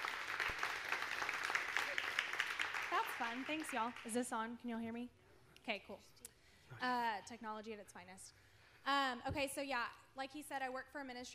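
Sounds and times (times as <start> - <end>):
audience applause: 0.0 - 4.2
speech: 3.2 - 11.3.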